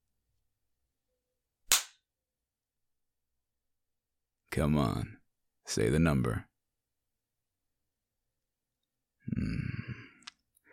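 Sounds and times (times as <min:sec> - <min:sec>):
hand slapping skin: 0:01.7 - 0:02.0
speech: 0:04.5 - 0:06.5, 0:09.3 - 0:09.7.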